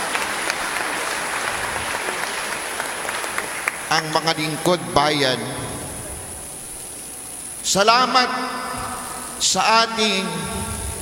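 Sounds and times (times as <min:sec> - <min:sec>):
audience clapping at a church gathering: 0:00.0 - 0:04.4
speech: 0:03.9 - 0:05.6, 0:07.7 - 0:08.6, 0:09.4 - 0:10.8.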